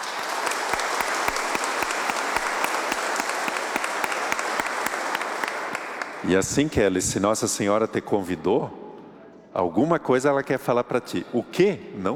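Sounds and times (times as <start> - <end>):
audience applause: 0.0 - 6.3
speech: 6.2 - 8.8, 9.6 - 12.1.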